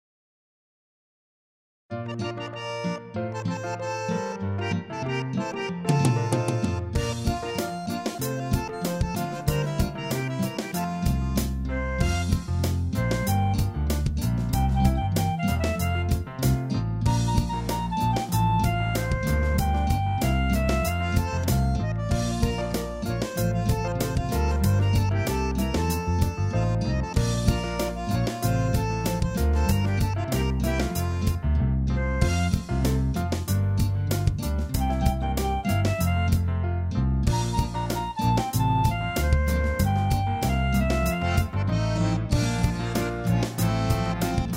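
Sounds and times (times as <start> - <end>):
instrumental music: 1.9 - 44.5.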